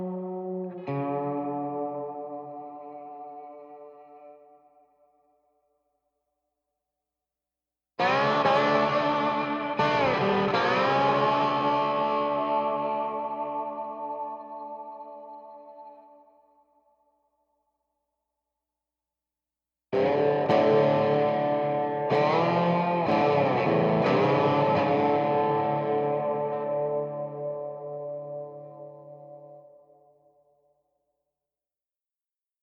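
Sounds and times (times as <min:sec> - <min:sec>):
guitar playing in D minor: 0:00.0 - 0:04.4, 0:08.0 - 0:16.2, 0:20.0 - 0:29.8.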